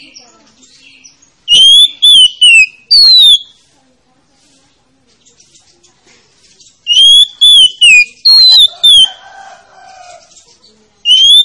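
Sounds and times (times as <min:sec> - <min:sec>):
Oriental magpie-robin song of bright whistled phrases: 0:00.0 - 0:03.6, 0:06.5 - 0:09.2, 0:09.9 - 0:11.4.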